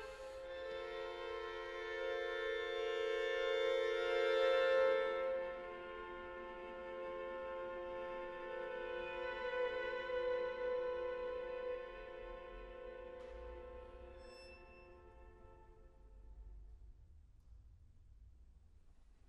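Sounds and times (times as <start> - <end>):
string quartet playing short pieces: 0.0 - 13.0.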